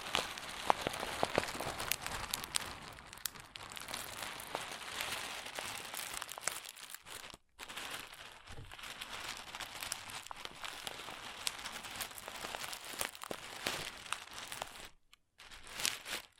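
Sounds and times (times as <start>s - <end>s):
crunchy slime being squeezed: 0.0s - 16.3s.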